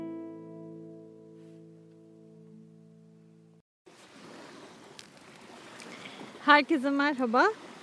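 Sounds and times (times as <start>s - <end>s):
sea waves at the shore: 3.8s - 7.8s
speech: 6.5s - 7.6s.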